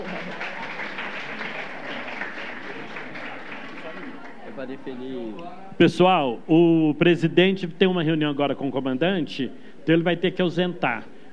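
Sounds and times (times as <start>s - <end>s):
crowd applauding: 0.0s - 4.8s
murmur of voices: 0.0s - 11.3s
speech: 4.6s - 11.1s.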